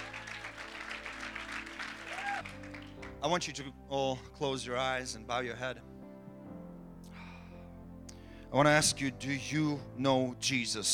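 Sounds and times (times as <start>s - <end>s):
audience clapping hands: 0.0s - 3.2s
speech: 3.2s - 5.8s, 8.5s - 10.9s.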